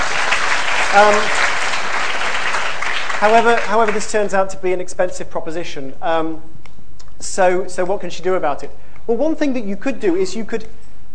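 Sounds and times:
crowd applauding: 0.0 - 4.2
speech: 0.9 - 1.4, 3.2 - 6.6, 7.3 - 10.8.

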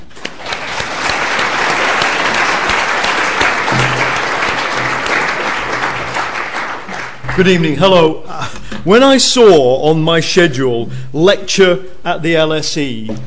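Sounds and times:
audience applause welcoming a lecturer at the London School of Economics: 0.0 - 7.8
speech: 7.4 - 13.2.

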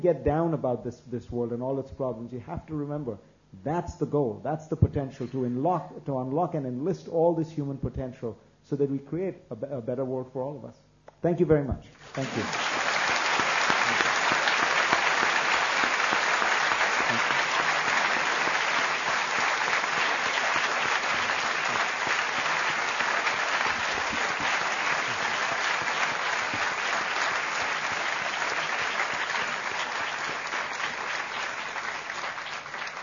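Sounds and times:
speech: 0.0 - 12.7
audience applause after lecture: 12.0 - 33.0.

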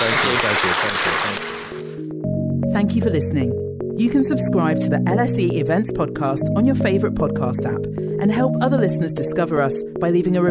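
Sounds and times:
audience applause: 0.0 - 1.9
speech: 0.3 - 1.5, 2.7 - 10.4.

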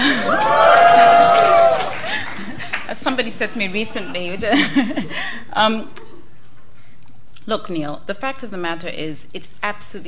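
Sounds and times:
audience cheering and whooping: 0.0 - 2.4
speech: 3.2 - 6.0, 7.5 - 10.0.

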